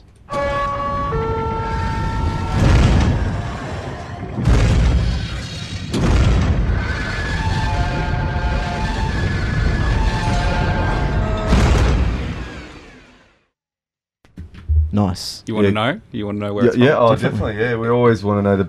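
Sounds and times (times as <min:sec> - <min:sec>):
ringing alarm-like tone: 0:00.3 - 0:04.3, 0:07.2 - 0:13.2
blast doors slamming shut in the hatch from the TV series Lost: 0:01.3 - 0:13.2
speech: 0:15.0 - 0:18.6.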